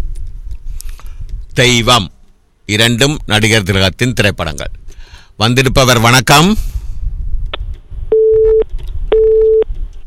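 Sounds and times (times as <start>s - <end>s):
speech: 1.6s - 4.8s, 5.4s - 6.8s
telephone busy tone after call disconnects: 8.1s - 9.7s.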